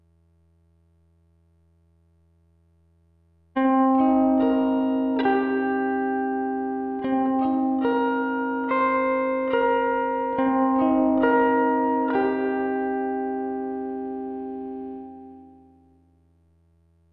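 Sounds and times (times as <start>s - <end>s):
guitar texture: 3.6s - 15.5s.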